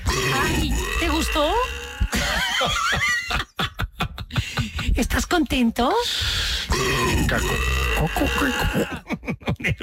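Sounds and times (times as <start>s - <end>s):
burp: 0.0s - 2.2s, 6.7s - 9.0s
speech: 0.5s - 1.8s, 2.6s - 3.5s, 5.4s - 9.8s
laughter: 2.1s - 5.0s, 8.0s - 9.8s.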